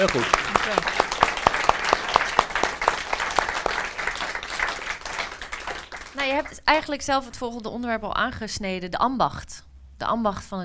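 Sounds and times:
speech: 0.0 - 1.0, 6.2 - 10.6
audience applause: 0.0 - 6.6.

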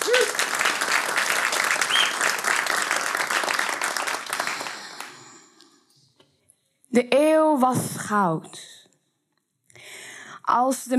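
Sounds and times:
warm audience applause: 0.0 - 5.4
speech: 7.0 - 8.7, 10.5 - 10.9.

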